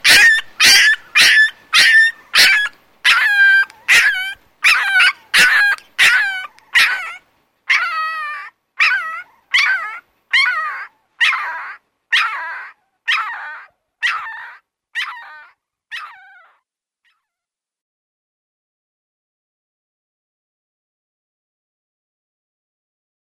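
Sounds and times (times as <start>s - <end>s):
dog yipping: 0.0s - 17.4s.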